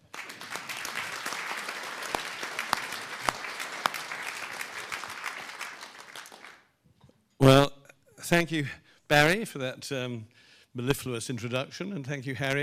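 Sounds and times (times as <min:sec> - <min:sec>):
audience clapping welcoming author Matthew Fort: 0:00.0 - 0:06.8
speech: 0:08.3 - 0:12.6.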